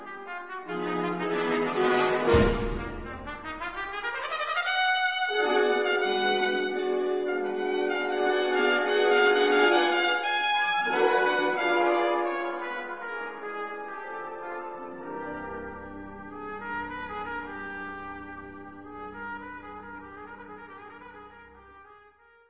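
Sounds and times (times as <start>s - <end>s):
trumpet concerto: 0.0s - 22.1s.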